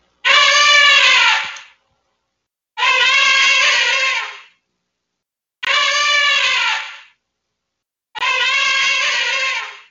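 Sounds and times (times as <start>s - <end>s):
elephant high-pitched trumpeting calls: 0.2s - 1.6s, 2.8s - 4.5s, 5.6s - 7.1s, 8.2s - 9.8s.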